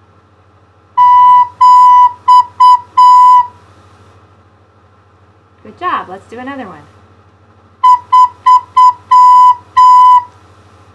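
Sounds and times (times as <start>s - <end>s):
recorder playing simple note patterns on B: 1.0s - 3.5s, 7.8s - 10.3s
speech: 5.6s - 7.0s.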